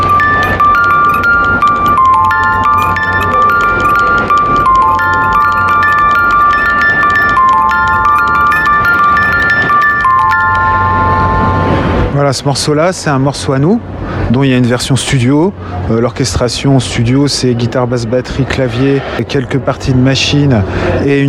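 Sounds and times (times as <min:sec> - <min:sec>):
music box melody: 0:00.0 - 0:12.1
speech: 0:12.3 - 0:21.2.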